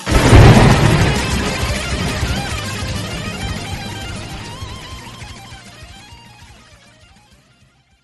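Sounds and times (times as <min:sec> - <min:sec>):
lightning strike: 0:00.1 - 0:05.6.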